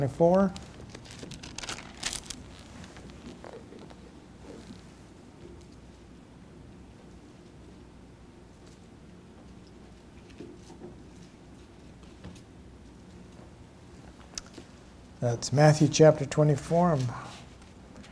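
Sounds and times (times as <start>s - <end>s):
speech: 0.0s - 0.7s, 15.2s - 17.4s
Bible pages turning: 0.3s - 4.0s.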